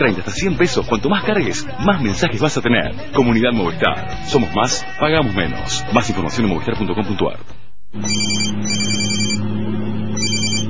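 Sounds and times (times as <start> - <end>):
speech: 0.0 - 8.7
mobile phone ringing in a moving car: 8.0 - 9.4, 10.2 - 10.6.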